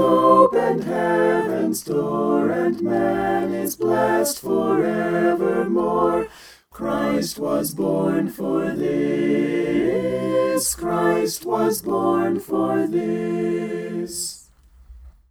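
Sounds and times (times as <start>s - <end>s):
christmas carol music mix: 0.0s - 14.7s.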